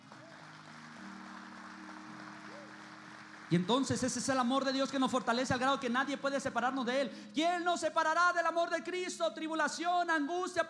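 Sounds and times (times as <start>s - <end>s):
audience applause: 0.0s - 5.9s
speech: 3.5s - 10.6s.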